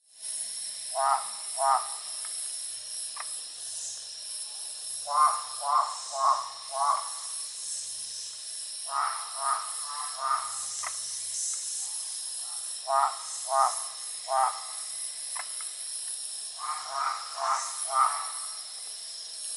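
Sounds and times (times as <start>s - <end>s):
Great barred frog calling: 0.9s - 2.1s, 5.0s - 7.4s, 8.8s - 11.0s, 12.8s - 15.5s, 16.5s - 18.7s.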